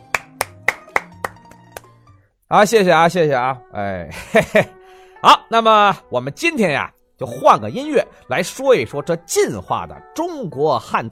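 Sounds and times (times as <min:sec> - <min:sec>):
applause: 0:00.0 - 0:02.0
speech: 0:02.5 - 0:11.1.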